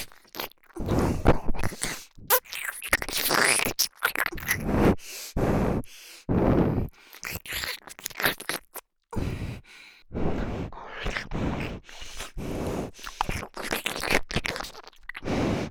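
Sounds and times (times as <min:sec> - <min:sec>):
ear licking sounds: 0:00.0 - 0:15.6
nose breathing: 0:00.8 - 0:02.2, 0:04.4 - 0:07.4, 0:09.1 - 0:15.6.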